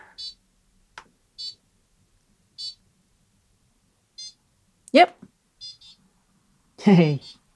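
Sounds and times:
low hum: 0.0s - 7.5s
electronic bing bong beep tones: 0.2s - 0.4s, 1.4s - 1.6s, 2.6s - 2.8s, 5.6s - 6.0s, 7.1s - 7.4s
speech: 4.9s - 5.3s, 6.8s - 7.4s.

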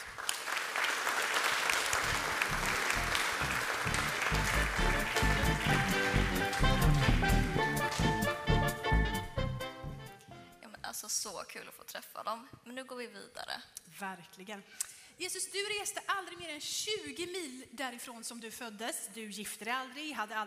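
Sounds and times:
audience applause: 0.0s - 8.8s
speech: 11.3s - 20.4s.

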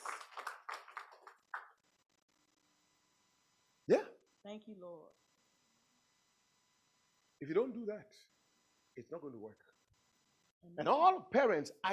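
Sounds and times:
audience clapping: 0.0s - 1.8s
speech: 3.9s - 5.2s, 7.4s - 8.3s, 9.0s - 9.7s, 10.6s - 11.9s.

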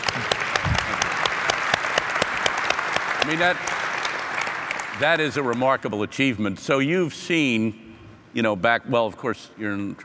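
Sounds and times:
audience applause: 0.0s - 5.6s
speech: 3.3s - 3.8s, 5.0s - 7.8s, 8.4s - 10.0s.

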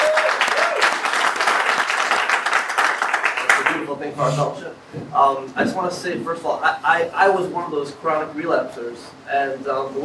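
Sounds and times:
audience applause: 0.0s - 3.9s
speech: 4.0s - 10.0s.

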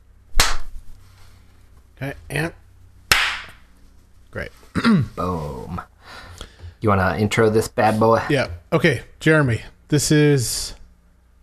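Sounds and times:
hand slap: 0.3s - 0.8s, 3.1s - 3.7s
speech: 2.0s - 2.6s, 4.4s - 5.9s, 6.8s - 10.8s.

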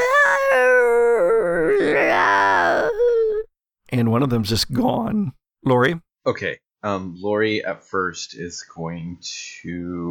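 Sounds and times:
voice imitating a horrible burning scream: 0.0s - 3.5s
speech: 3.9s - 10.0s.

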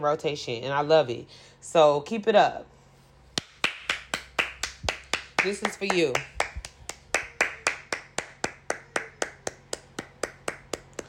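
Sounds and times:
speech: 0.0s - 2.8s, 5.4s - 6.3s
applause: 3.4s - 10.8s.

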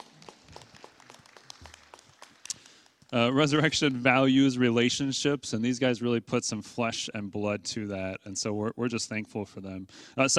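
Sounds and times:
audience applause: 0.0s - 4.1s
speech: 3.1s - 10.3s.

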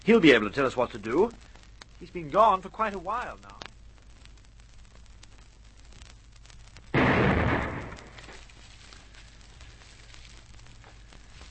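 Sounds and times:
speech: 0.0s - 3.6s
shell fire explosions directed at the hill: 6.9s - 8.4s.

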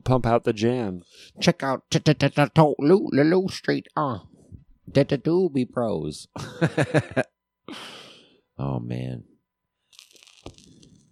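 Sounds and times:
speech: 0.0s - 4.3s, 4.9s - 8.0s, 8.6s - 9.3s
laughter: 6.4s - 7.3s
vinyl record crackle: 9.9s - 11.1s.

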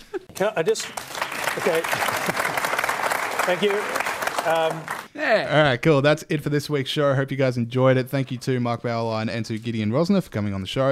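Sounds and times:
speech: 0.4s - 2.5s, 3.4s - 10.9s
applause: 0.4s - 5.1s.

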